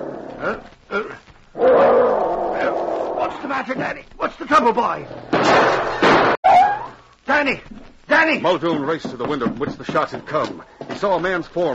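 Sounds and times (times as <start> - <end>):
speech: 0.4 - 1.2, 3.7 - 6.1, 7.4 - 11.7
dog growling: 1.6 - 3.5.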